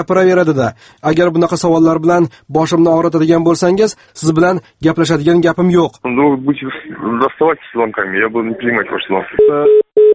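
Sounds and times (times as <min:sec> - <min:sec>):
speech: 0:00.0 - 0:09.8
telephone tone after the receiver is hung up: 0:09.4 - 0:10.1.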